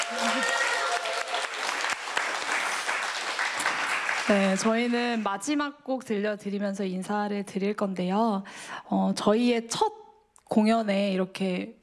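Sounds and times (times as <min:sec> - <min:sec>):
audience applause: 0:00.0 - 0:05.2
speech: 0:04.3 - 0:11.8.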